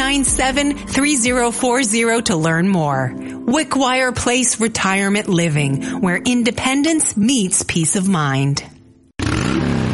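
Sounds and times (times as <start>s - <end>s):
speech: 0.2s - 8.7s
motorcycle engine revving for the Digby motorcycle rally: 9.2s - 9.9s.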